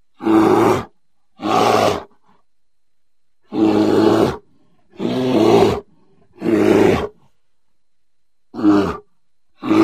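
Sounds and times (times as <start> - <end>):
grizzly bear sounds: 0.1 - 2.4, 3.4 - 7.4, 8.5 - 9.8.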